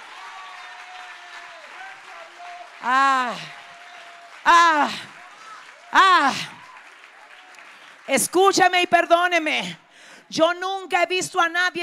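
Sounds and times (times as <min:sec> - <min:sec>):
audience applause: 0:00.0 - 0:08.8
speech: 0:02.8 - 0:03.6, 0:04.4 - 0:05.2, 0:05.9 - 0:06.6, 0:08.1 - 0:11.8.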